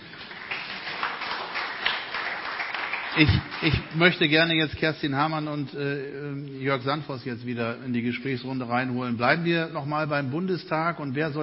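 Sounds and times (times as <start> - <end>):
audience applause: 0.0 - 4.7
speech: 3.2 - 11.4.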